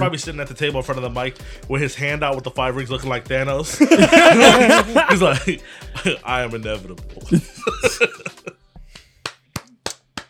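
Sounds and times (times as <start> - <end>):
speech: 0.0 - 8.1
laughter: 3.7 - 6.2, 7.3 - 8.5
people clapping: 8.9 - 10.2.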